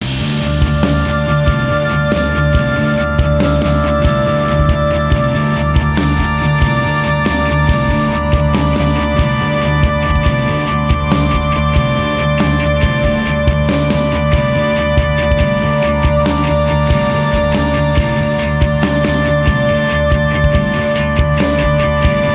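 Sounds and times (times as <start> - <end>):
ghostly spooky music on all instruments: 0.1 - 22.3.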